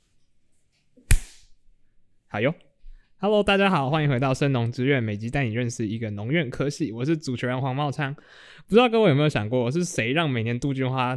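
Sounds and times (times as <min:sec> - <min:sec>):
single sharp hand clap: 0:01.1 - 0:01.4
speech: 0:02.3 - 0:11.1.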